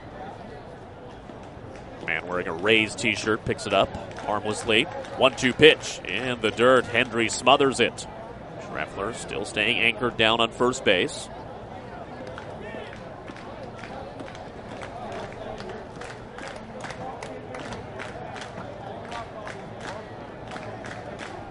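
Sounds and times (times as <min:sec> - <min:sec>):
stadium crowd clapping in rhythm: 0:01.7 - 0:07.9, 0:12.2 - 0:21.4
speech: 0:02.1 - 0:08.2, 0:08.8 - 0:11.4.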